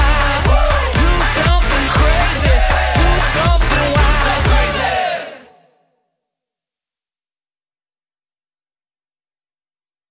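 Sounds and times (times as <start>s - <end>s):
mini hip hop beat: 0.0s - 5.4s.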